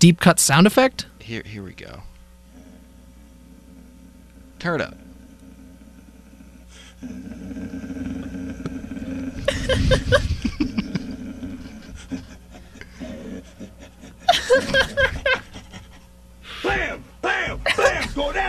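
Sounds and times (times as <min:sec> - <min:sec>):
speech: 0:00.0 - 0:02.1, 0:04.6 - 0:05.0, 0:07.0 - 0:08.0, 0:09.7 - 0:10.3
steady low hum: 0:00.0 - 0:18.4
laughter: 0:09.2 - 0:18.4
man imitating dog barking: 0:16.6 - 0:18.4.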